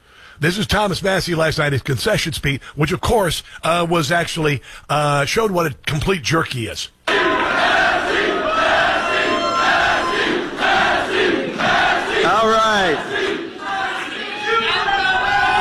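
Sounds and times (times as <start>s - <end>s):
speech: 0.4s - 7.6s
crowd yelling and chanting a name: 7.1s - 15.5s.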